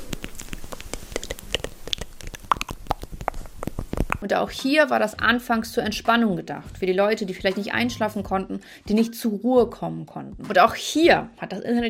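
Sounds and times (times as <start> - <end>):
ASMR crunching and chewing: 0.0 - 4.2
sharp clicks and snaps: 0.0 - 4.2
soft steady noise: 0.0 - 6.8
speech: 4.2 - 11.8.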